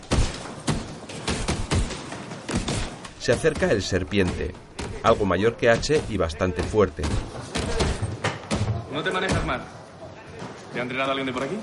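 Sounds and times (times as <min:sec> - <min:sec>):
boxing gloves punching a training bag: 0:00.0 - 0:08.8
speech: 0:03.2 - 0:07.4, 0:09.0 - 0:09.8, 0:10.7 - 0:11.6.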